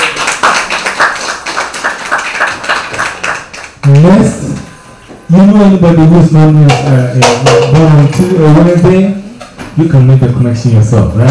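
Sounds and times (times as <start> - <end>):
audience clapping: 0.0 - 4.0
speech: 3.9 - 4.5, 5.3 - 9.2, 9.8 - 11.2.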